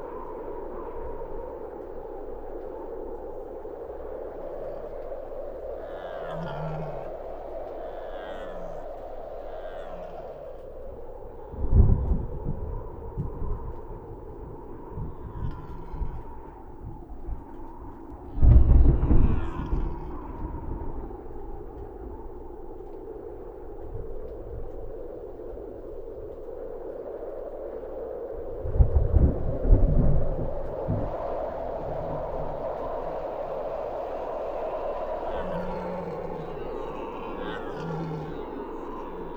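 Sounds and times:
distant thunderstorm: 4.4 - 22.2, 28.6 - 39.3.

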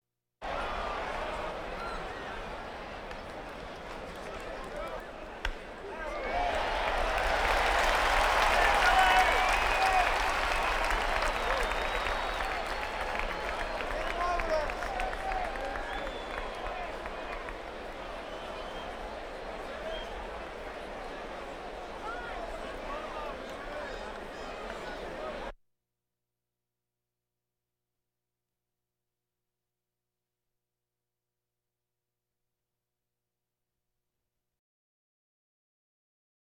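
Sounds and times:
crowds: 0.4 - 25.5.

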